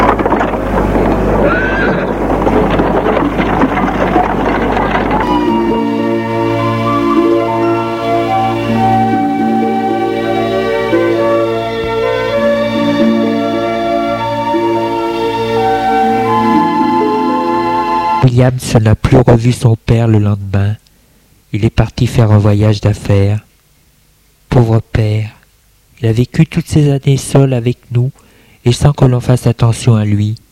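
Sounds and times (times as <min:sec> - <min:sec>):
horse-drawn carriage departing: 0:00.0 - 0:18.3
horse neighing: 0:01.4 - 0:02.2
speech: 0:18.4 - 0:20.8, 0:21.5 - 0:23.5, 0:24.6 - 0:25.4, 0:26.0 - 0:30.4.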